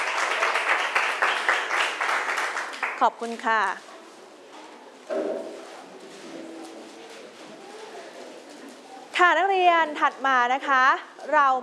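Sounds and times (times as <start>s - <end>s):
classroom applause: 0.0s - 3.0s
speech: 3.0s - 3.9s, 5.1s - 5.6s, 9.2s - 11.6s.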